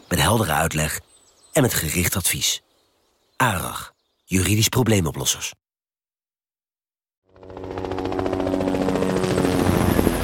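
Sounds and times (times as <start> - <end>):
speech: 0.3 - 2.7, 3.4 - 5.6
trauma helicopter Lifeliner 1 rotor taking off from VU Medical Center in Amsterdam: 7.3 - 10.2.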